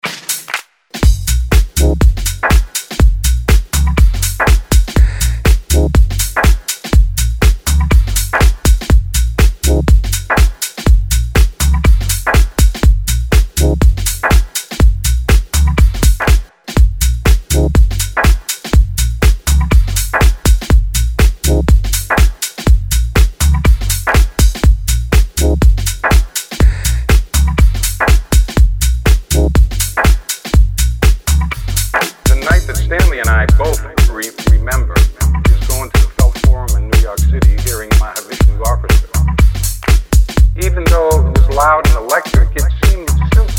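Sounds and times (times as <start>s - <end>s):
jazz-like music: 0.0s - 43.5s.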